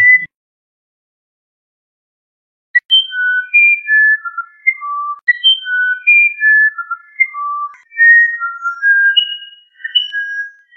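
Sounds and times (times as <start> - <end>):
musician wren whistling a phrase: 2.9 - 10.7.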